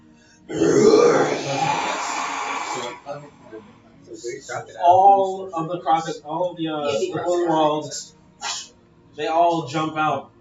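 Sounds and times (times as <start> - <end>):
breathy sounds: 0.2 - 4.2
person imitating a crocodile roar: 0.5 - 3.5
speech: 4.2 - 8.2, 9.2 - 10.3.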